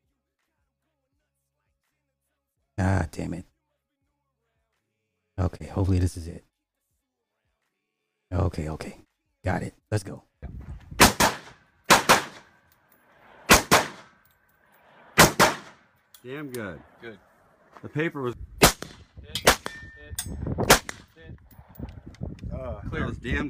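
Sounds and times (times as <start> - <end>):
speech: 2.8 - 3.5, 5.4 - 6.5, 8.3 - 10.7, 16.2 - 18.6, 20.1 - 21.6, 22.5 - 23.4
gunshots at a shooting range: 11.0 - 12.6, 13.2 - 14.2, 14.8 - 15.9, 18.6 - 19.9, 20.6 - 21.2.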